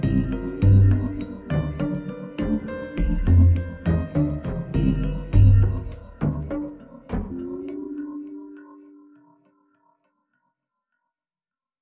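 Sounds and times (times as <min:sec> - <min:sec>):
quirky playful piano melody at 102 BPM: 0:00.0 - 0:09.2.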